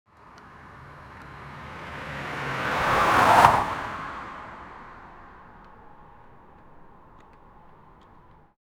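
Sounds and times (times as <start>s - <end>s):
car tires skidding: 0.5s - 8.6s.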